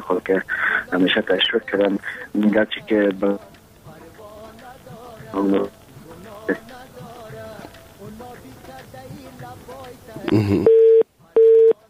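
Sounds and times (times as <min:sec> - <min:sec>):
speech: 0:00.1 - 0:03.5, 0:05.3 - 0:05.8, 0:06.5 - 0:06.8, 0:10.3 - 0:10.8
telephone busy tone beeps: 0:10.6 - 0:11.8.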